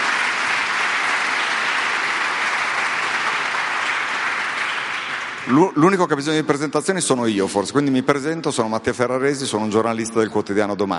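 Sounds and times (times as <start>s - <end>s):
large audience applause: 0.0s - 5.8s
speech: 5.5s - 10.9s.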